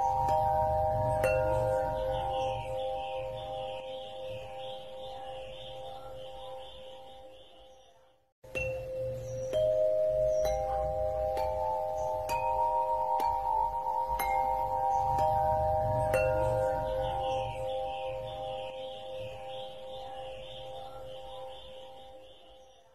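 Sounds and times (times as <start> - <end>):
pentatonic Dorian melody: 0.0 - 7.5, 8.4 - 22.7.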